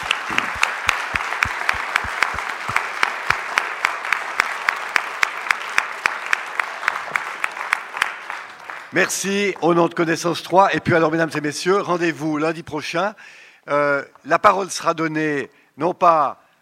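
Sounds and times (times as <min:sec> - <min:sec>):
audience applause: 0:00.0 - 0:09.6
speech: 0:09.0 - 0:16.4.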